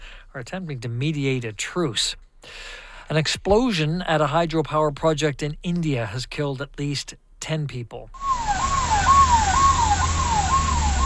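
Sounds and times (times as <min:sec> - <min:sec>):
speech: 0:00.4 - 0:08.3
ambulance siren: 0:08.2 - 0:11.0.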